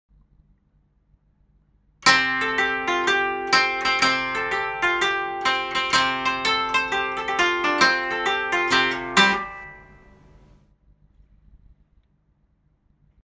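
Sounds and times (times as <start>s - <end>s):
koto: 2.0s - 10.4s.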